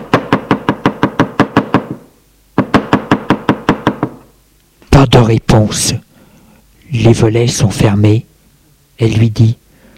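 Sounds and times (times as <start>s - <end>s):
knocking on a door: 0.0s - 2.0s, 2.6s - 4.2s
speech: 5.0s - 6.1s, 6.9s - 8.3s, 9.0s - 9.6s.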